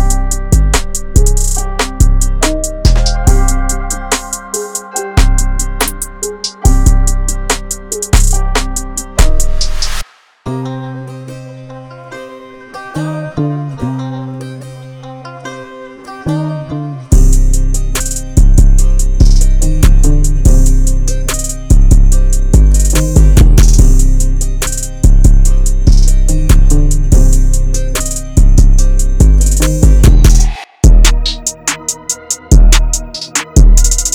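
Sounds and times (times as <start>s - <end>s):
hard analog trap beat: 0.0s - 10.0s, 17.1s - 34.1s.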